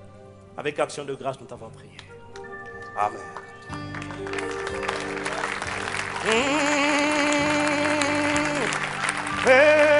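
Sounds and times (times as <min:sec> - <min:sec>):
speech: 0:00.6 - 0:02.4, 0:03.0 - 0:04.4, 0:06.2 - 0:06.8, 0:09.4 - 0:09.8
audience applause: 0:03.7 - 0:09.9.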